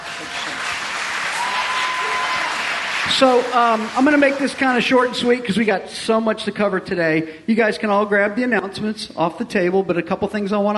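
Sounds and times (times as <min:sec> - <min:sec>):
audience clapping hands: 0:00.0 - 0:05.4
speech: 0:03.1 - 0:10.7.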